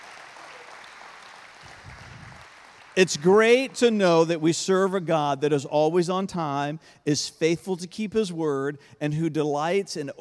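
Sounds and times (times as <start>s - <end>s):
audience clapping: 0.0s - 3.9s
speech: 3.0s - 10.1s.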